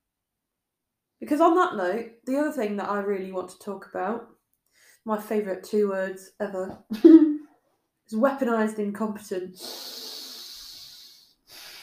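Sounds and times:
speech: 1.2s - 4.4s, 5.0s - 7.3s, 8.1s - 10.2s
deep intake of breath: 9.6s - 11.8s.

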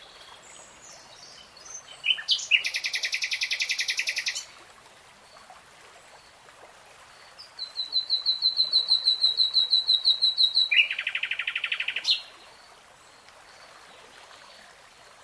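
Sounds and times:
nightingale singing: 1.8s - 4.5s, 7.6s - 12.3s.

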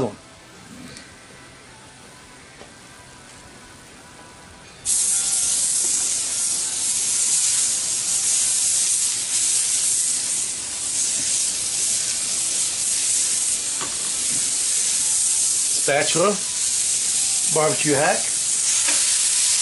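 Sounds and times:
smash burger sizzling on a new Blackstone griddle: 4.8s - 19.6s
speech: 15.9s - 16.5s, 17.5s - 18.3s.

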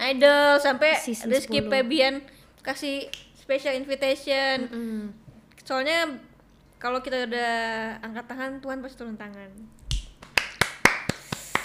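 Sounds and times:
speech: 0.1s - 9.8s
hands clapping: 9.9s - 11.6s.

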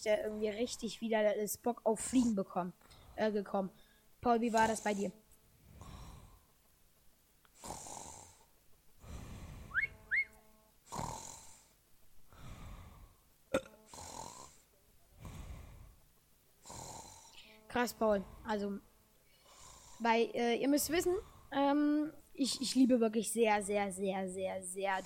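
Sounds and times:
speech: 0.0s - 5.2s, 17.8s - 18.9s, 20.0s - 25.0s
person snoring: 4.4s - 6.5s, 7.6s - 10.0s, 10.8s - 13.2s, 13.9s - 16.0s, 16.6s - 18.6s, 19.4s - 20.2s, 24.8s - 25.0s
high whistling squeaks: 9.7s - 10.4s.

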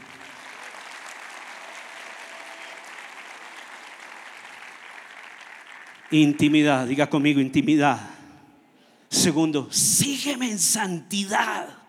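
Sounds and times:
audience applause: 0.0s - 6.3s
speech: 6.1s - 8.1s, 9.2s - 11.8s.

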